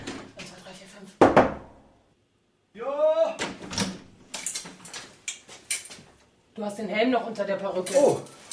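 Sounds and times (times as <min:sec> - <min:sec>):
knocking on a door: 0:01.2 - 0:01.8
speech: 0:06.6 - 0:08.4.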